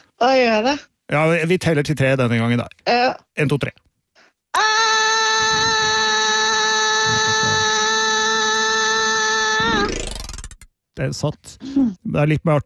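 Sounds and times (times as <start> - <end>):
speech: 0.2 - 3.8, 4.5 - 5.7, 11.0 - 12.6
person shouting up a stairwell: 4.6 - 9.9.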